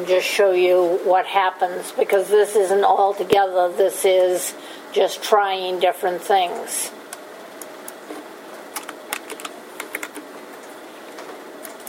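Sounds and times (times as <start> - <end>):
speech: 0.0 - 7.0
faint steady hum: 0.0 - 11.8
typing on a computer keyboard: 8.8 - 10.2.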